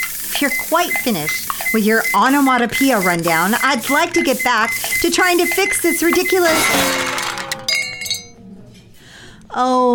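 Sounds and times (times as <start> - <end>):
malfunctioning espresso machine clanking: 0.0 - 7.6
speech: 0.4 - 7.2, 9.6 - 9.9.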